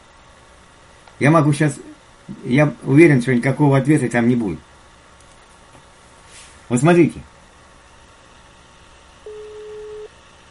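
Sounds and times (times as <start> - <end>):
faint hiss: 0.0 - 10.5
speech: 1.2 - 4.7, 6.7 - 7.3
telephone line tone: 9.2 - 10.2.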